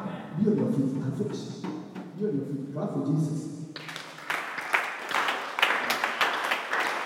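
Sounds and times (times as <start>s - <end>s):
speech: 0.4s - 1.7s, 2.8s - 4.0s
audience clapping hands: 3.7s - 7.0s.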